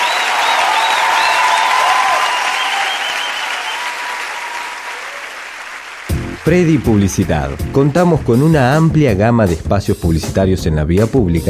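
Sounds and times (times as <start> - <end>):
cheers and whistles: 0.0 - 5.8
audience applause: 0.0 - 9.0
speech: 6.4 - 11.4.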